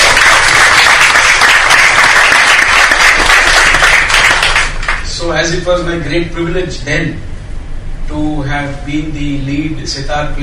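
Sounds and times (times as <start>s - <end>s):
crowd applauding: 0.0s - 5.1s
speech: 5.4s - 7.4s, 8.1s - 10.4s.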